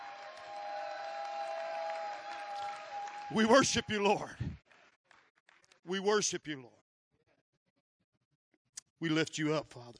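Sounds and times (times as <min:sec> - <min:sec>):
audience clapping and shouting: 0:00.0 - 0:06.4
speech: 0:03.3 - 0:04.5, 0:05.9 - 0:06.8, 0:09.0 - 0:09.9.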